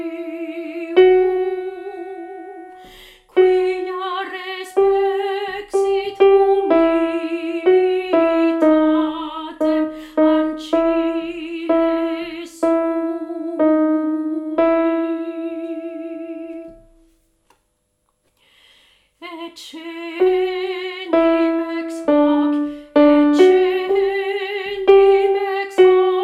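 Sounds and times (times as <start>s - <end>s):
alto voice singing: 0.0s - 16.9s, 19.2s - 26.2s.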